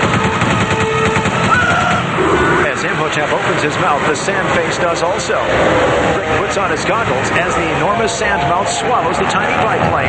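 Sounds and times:
machine gun mounted on a biplane firing in a film action scene: 0.0 - 2.2
speech: 3.1 - 10.0.

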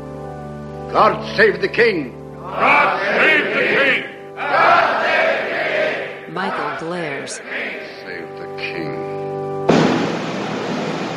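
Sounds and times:
speech: 0.9 - 5.0, 6.4 - 9.0
cannons fired by soldiers outside: 9.7 - 11.1.

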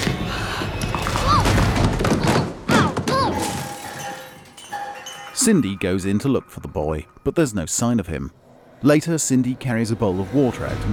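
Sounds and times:
body tumbling down stairs: 0.0 - 3.8
speech: 5.5 - 10.9.

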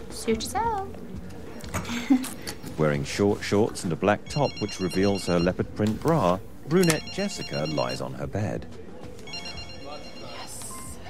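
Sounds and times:
speech: 0.2 - 8.8
phone ringing with an incoming call: 4.3 - 5.8, 6.7 - 8.2, 9.3 - 11.0.

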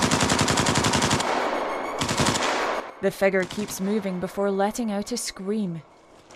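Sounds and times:
automatic gunfire: 0.0 - 3.8
speech: 3.0 - 5.9.

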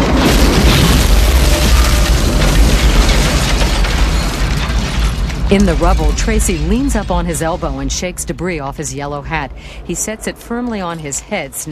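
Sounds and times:
apartment house basement exploding: 0.0 - 8.8
speech: 5.5 - 11.7.

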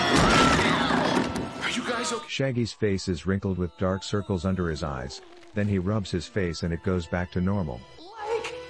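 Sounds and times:
dolls hit against a wall: 0.1 - 1.6
speech: 2.1 - 8.3.

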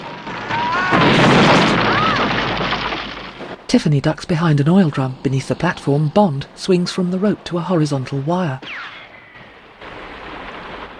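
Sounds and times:
missile explosion against an oil-rig platform in a James Bond film: 0.0 - 3.6, 8.6 - 10.9
speech: 3.7 - 8.8.

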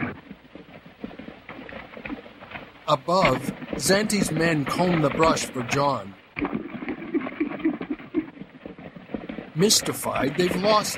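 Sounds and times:
horse galloping toward the edge of a steep riverbank: 0.0 - 5.8, 6.4 - 10.9
speech: 2.9 - 6.5, 9.6 - 10.9.

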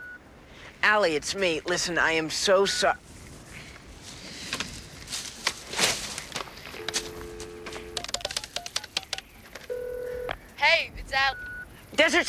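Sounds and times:
telephone keypad tones at a gas station: 0.0 - 0.3, 2.6 - 3.0, 6.7 - 11.8
brush noises: 0.6 - 10.7
speech: 0.8 - 3.1, 12.0 - 12.2
scuffing footsteps: 3.6 - 10.6
quick clicks: 5.4 - 10.5.

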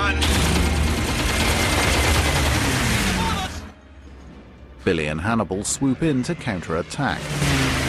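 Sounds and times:
bomber gunner's machine gun firing: 0.2 - 3.6
speech: 4.9 - 7.7.

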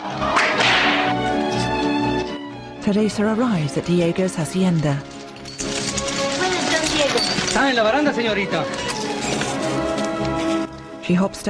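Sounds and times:
music: 0.0 - 11.4
whip lashing a priest's back: 0.3 - 1.4
speech: 2.9 - 5.1, 7.6 - 8.9, 11.1 - 11.4.

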